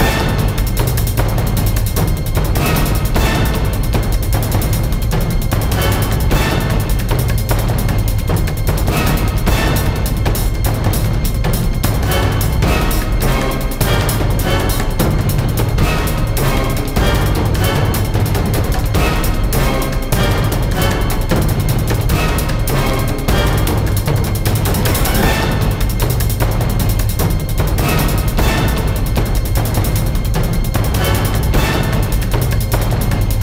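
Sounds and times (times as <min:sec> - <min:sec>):
battle music: 0:00.0 - 0:33.4.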